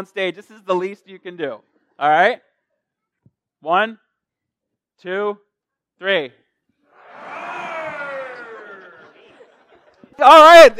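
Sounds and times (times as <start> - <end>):
speech: 0.0 - 2.5, 3.6 - 4.0, 5.0 - 5.4, 6.0 - 6.4, 10.2 - 10.7
crowd imitating lion roar: 6.9 - 9.3
laughter: 6.9 - 10.2.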